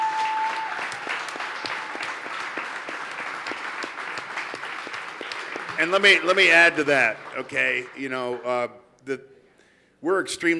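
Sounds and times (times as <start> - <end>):
audience applause: 0.0 - 8.5
speech: 5.8 - 9.3, 10.0 - 10.5.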